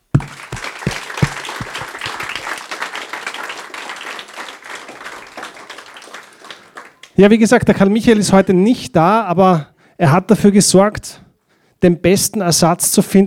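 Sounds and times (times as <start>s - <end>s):
audience applause: 0.2s - 7.2s
speech: 7.2s - 11.2s, 11.8s - 13.2s.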